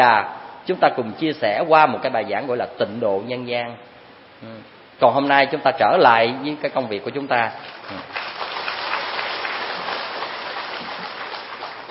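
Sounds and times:
speech: 0:00.0 - 0:08.4
audience applause at a Vietnamese Buddhist dharma lecture: 0:07.8 - 0:11.8.

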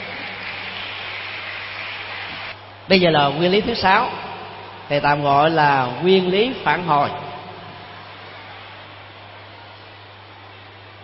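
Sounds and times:
children in an audience applauding themselves during a lecture: 0:00.0 - 0:02.6, 0:07.5 - 0:11.0
speech: 0:02.9 - 0:04.2, 0:04.9 - 0:07.2.

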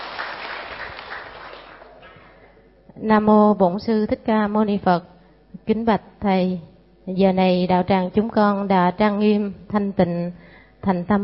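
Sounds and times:
large crowd applause welcoming a monk: 0:00.0 - 0:02.4
speech: 0:03.0 - 0:11.2.

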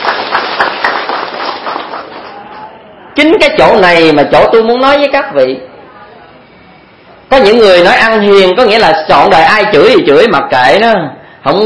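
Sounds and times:
audience applause: 0:00.0 - 0:02.7
speech: 0:03.2 - 0:05.7, 0:07.4 - 0:11.6.

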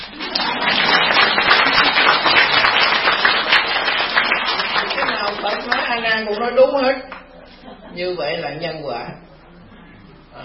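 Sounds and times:
crowd clapping at a Buddhist teaching talk: 0:00.0 - 0:06.1
speech: 0:06.0 - 0:07.1, 0:07.9 - 0:09.3.

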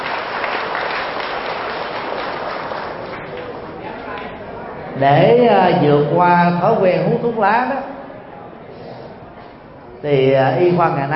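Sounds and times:
audience applause: 0:00.0 - 0:04.3
speech: 0:05.0 - 0:07.9, 0:10.0 - 0:11.1.

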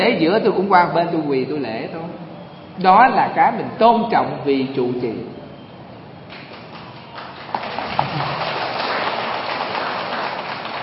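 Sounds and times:
speech: 0:00.0 - 0:02.2, 0:02.8 - 0:05.4
audience applause: 0:06.3 - 0:10.8.

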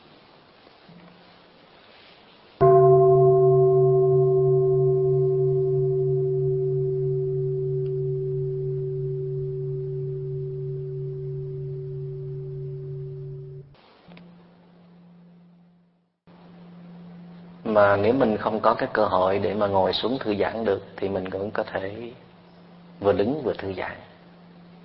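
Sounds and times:
meditation bell ringing: 0:02.6 - 0:13.6
speech: 0:17.8 - 0:22.3, 0:23.0 - 0:24.1.

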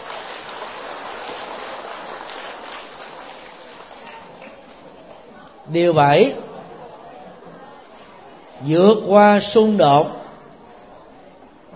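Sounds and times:
audience applause: 0:00.0 - 0:05.1
speech: 0:05.7 - 0:06.5, 0:08.6 - 0:10.2.

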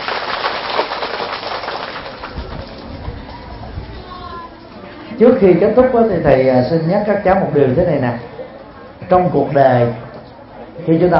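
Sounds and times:
audience applause: 0:00.0 - 0:03.5
speech: 0:05.2 - 0:08.3, 0:09.1 - 0:10.0, 0:10.8 - 0:11.1.

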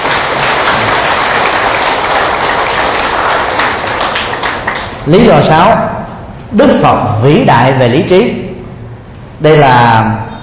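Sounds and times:
loud applause: 0:00.0 - 0:05.0
speech: 0:05.0 - 0:05.9, 0:06.5 - 0:08.4, 0:09.4 - 0:10.3.

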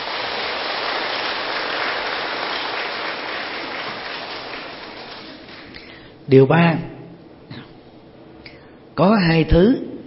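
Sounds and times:
audience applause: 0:00.0 - 0:05.8
speech: 0:06.3 - 0:06.9, 0:09.0 - 0:09.9.

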